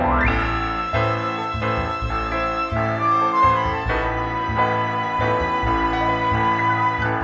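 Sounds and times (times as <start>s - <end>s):
flute: 0.2s - 7.2s.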